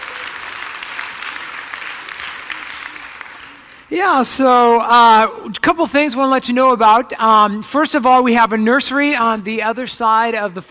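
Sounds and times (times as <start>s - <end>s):
congregation at a Christmas service applauding the worship team: 0.0s - 4.7s
speech: 3.9s - 10.6s.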